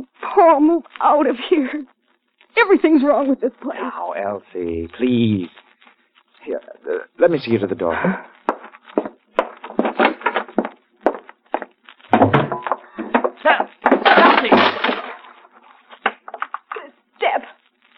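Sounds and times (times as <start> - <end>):
speech: 0.0 - 1.9, 2.6 - 5.6, 6.4 - 8.4
wooden knocks and creaks: 8.5 - 15.2
foot breaking through a wooden step: 8.5 - 15.4
scraping, rattling debris: 12.0 - 16.7.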